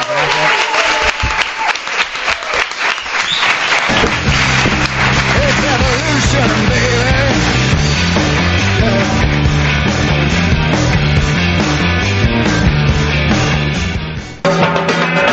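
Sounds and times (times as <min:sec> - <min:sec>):
audience applause: 0:00.0 - 0:07.1
upbeat music: 0:03.8 - 0:15.3.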